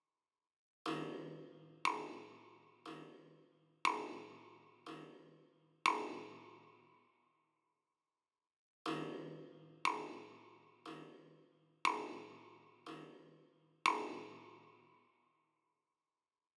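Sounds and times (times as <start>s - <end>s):
drums and percussion: 0.9s - 6.6s, 8.9s - 14.6s.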